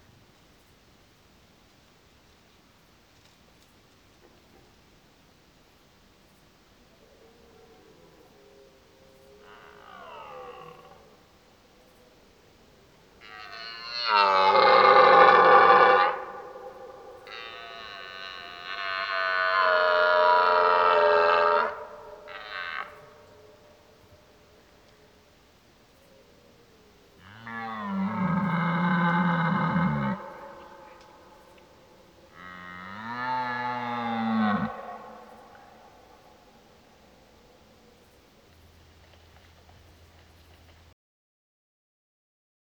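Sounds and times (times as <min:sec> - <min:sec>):
red deer stag roaring: 0:07.0 - 0:11.4, 0:13.2 - 0:25.2, 0:26.6 - 0:37.9.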